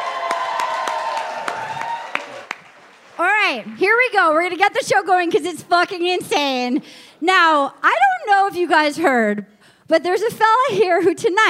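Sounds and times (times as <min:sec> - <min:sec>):
comedy club audience applause: 0:00.0 - 0:03.8
speech: 0:03.5 - 0:11.4.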